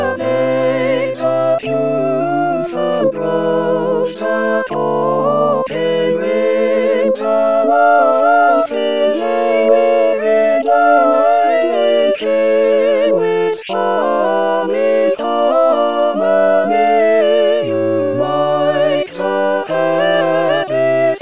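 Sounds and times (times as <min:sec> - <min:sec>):
full chorus tutti voices: 0:00.0 - 0:21.2.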